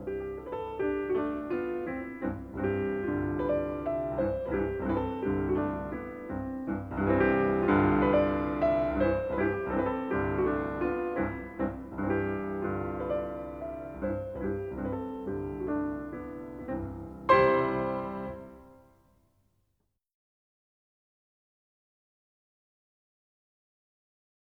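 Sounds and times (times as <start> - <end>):
piano mazurka: 0.0 - 19.0.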